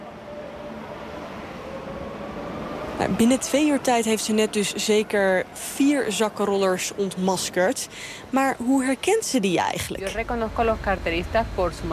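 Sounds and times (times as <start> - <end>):
metro train pulling away from the platform rumbling: 0.0 - 11.9
speech: 3.0 - 11.9.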